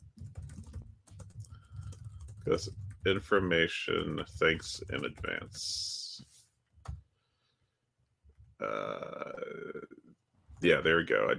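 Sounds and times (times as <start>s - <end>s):
typing on a computer keyboard: 0.0s - 3.2s, 4.0s - 5.6s
speech: 2.4s - 6.0s, 8.6s - 9.9s, 10.6s - 11.3s.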